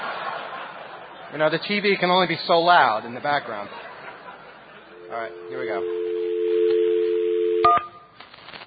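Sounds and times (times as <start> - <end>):
laughter: 0.0 - 1.5, 3.2 - 5.4
speech: 1.3 - 3.9, 5.1 - 6.1
dial tone: 5.0 - 7.8.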